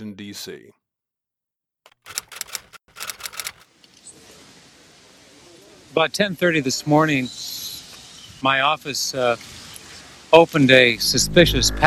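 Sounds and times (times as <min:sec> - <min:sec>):
speech: 0:00.1 - 0:00.8, 0:02.1 - 0:02.3, 0:05.9 - 0:07.5, 0:08.4 - 0:09.6, 0:10.3 - 0:11.8
typewriter-style typing clacks: 0:01.9 - 0:03.7
faint hiss: 0:03.7 - 0:11.8.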